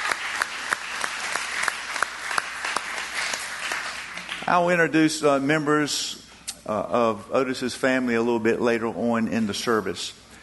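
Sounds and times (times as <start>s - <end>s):
audience hand clapping: 0.0s - 4.8s
speech: 4.5s - 10.2s.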